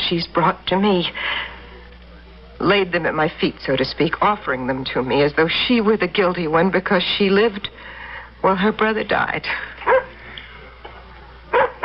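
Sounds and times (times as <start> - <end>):
speech: 0.1 - 1.4, 2.6 - 10.1
dog barking at the door: 9.8 - 10.1, 11.5 - 11.8
dog yipping: 9.9 - 10.1, 11.5 - 11.8.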